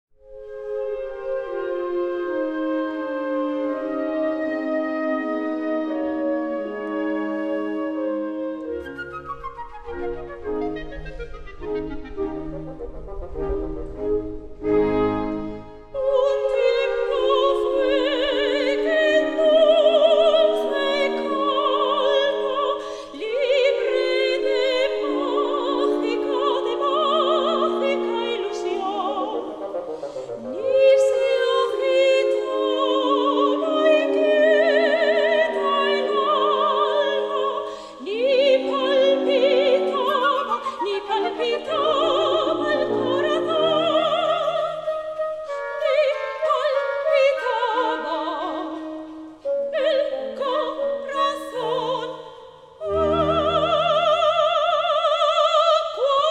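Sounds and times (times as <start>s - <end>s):
soprano singing: 0.4s - 56.2s.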